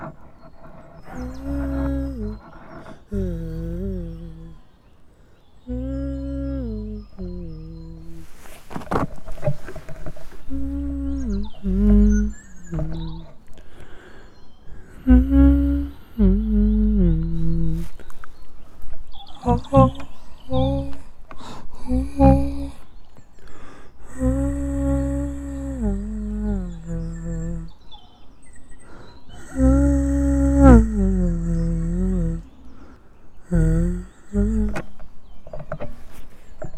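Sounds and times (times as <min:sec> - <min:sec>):
person singing: 0:01.0 - 0:04.6, 0:05.7 - 0:08.4, 0:10.5 - 0:13.4, 0:14.8 - 0:18.1, 0:19.4 - 0:22.9, 0:23.6 - 0:27.8, 0:29.3 - 0:32.7, 0:33.5 - 0:34.9.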